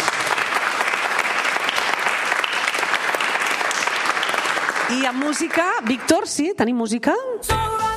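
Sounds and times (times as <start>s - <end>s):
loud applause: 0.0s - 6.2s
speech: 4.9s - 7.8s.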